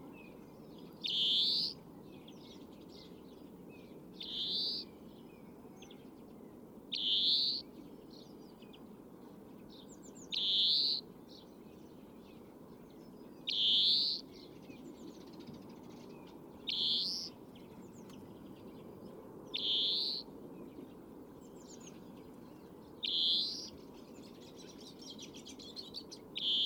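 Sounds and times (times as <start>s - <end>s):
faint bird chirps: 0.1s - 8.9s, 9.5s - 18.9s, 19.5s - 20.3s, 21.5s - 26.6s
European greenfinch wheezing calls: 1.1s - 1.8s, 4.2s - 4.9s, 7.0s - 7.6s, 10.4s - 11.0s, 13.5s - 14.2s, 16.7s - 17.3s, 19.6s - 20.3s, 23.0s - 23.7s, 26.4s - 26.6s.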